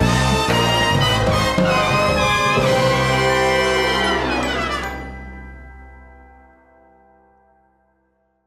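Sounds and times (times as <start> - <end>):
complete music sting: 0.0 - 5.8.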